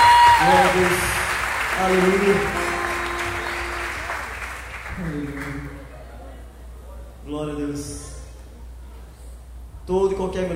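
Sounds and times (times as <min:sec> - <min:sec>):
audience applause: 0:00.0 - 0:06.0
speech: 0:01.8 - 0:02.5.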